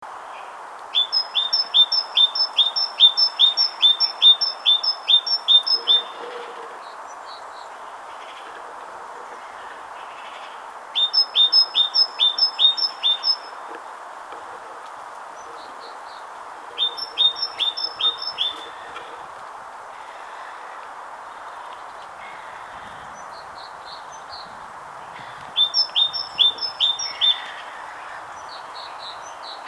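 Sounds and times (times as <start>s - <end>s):
great tit song: 0.9s - 6.2s, 9.4s - 13.6s, 15.4s - 19.3s, 22.2s - 29.6s.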